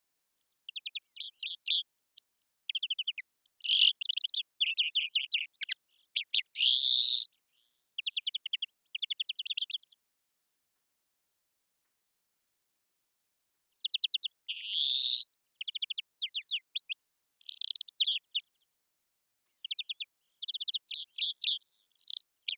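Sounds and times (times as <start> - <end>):
European greenfinch Chloris chloris singing: 0.7 - 7.3, 7.9 - 9.8, 13.8 - 18.5, 19.6 - 22.5.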